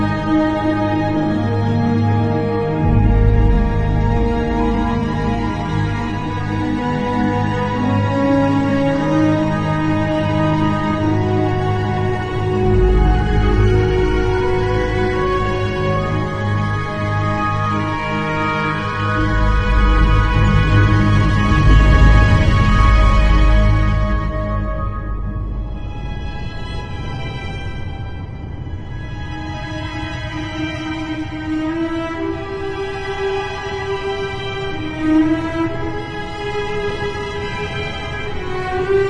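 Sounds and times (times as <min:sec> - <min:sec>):
cavern ambience: 0:00.0 - 0:39.0
dwarven fantasy music: 0:00.0 - 0:39.0.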